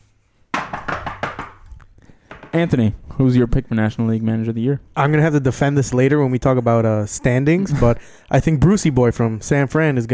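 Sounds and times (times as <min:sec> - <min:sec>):
knocking on wood: 0:00.5 - 0:02.7
speech: 0:02.5 - 0:10.1.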